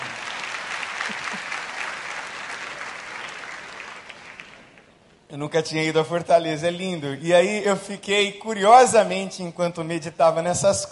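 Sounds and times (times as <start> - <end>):
audience applauding: 0.0 - 4.9
speech: 5.3 - 10.9.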